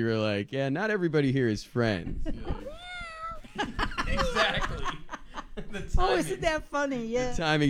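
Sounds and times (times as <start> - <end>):
speech: 0.0 - 2.7, 5.7 - 7.6
people laughing: 1.9 - 6.5
cat meowing: 2.6 - 3.5.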